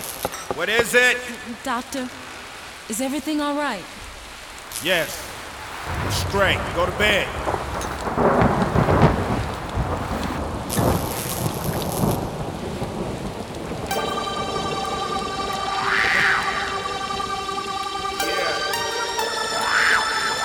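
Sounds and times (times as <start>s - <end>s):
heavy rain: 0.0s - 20.4s
speech: 0.6s - 2.2s, 2.9s - 4.0s, 4.8s - 7.6s
low thunder rumbling: 5.6s - 18.0s
rising and falling wail: 13.9s - 20.4s
sustained tonal hums: 13.9s - 20.4s.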